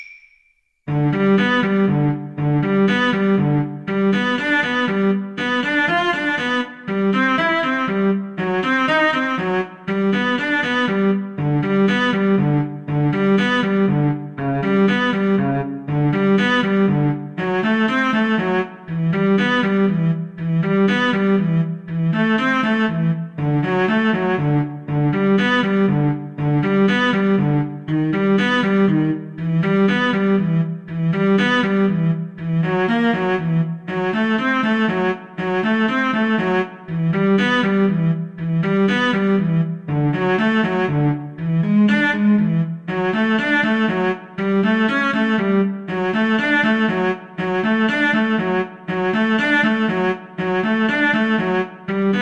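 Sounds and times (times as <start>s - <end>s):
cello: 0.9s - 52.2s
viola: 0.9s - 52.2s.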